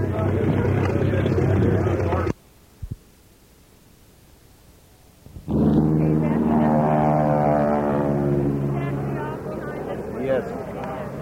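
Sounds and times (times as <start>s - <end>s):
airplane engine drone at the Blakesburg fly-in: 0.0s - 2.4s, 5.3s - 11.2s.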